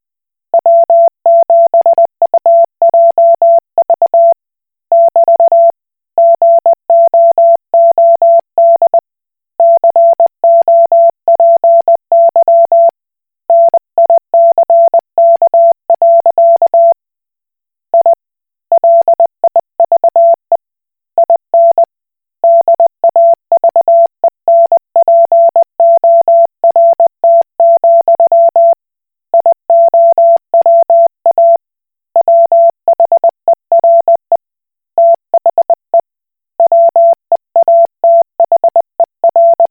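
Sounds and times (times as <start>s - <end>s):
Koch Morse code beeps: 0.6s - 4.3s, 4.9s - 9.0s, 9.6s - 12.9s, 13.5s - 16.9s, 18.8s - 20.4s, 21.2s - 21.9s, 22.5s - 28.7s, 29.3s - 31.6s, 32.2s - 34.3s, 35.0s - 35.7s, 36.6s - 39.6s.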